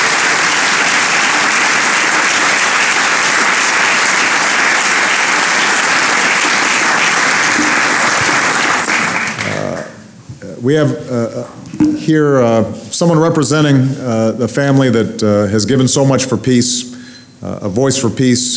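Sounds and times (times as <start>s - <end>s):
audience applause: 0.0s - 10.0s
speech: 10.6s - 18.5s.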